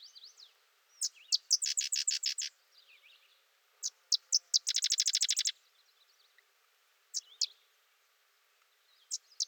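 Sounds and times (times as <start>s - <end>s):
sedge wren song: 0.0s - 3.2s, 3.8s - 5.6s, 7.1s - 7.6s, 9.0s - 9.4s.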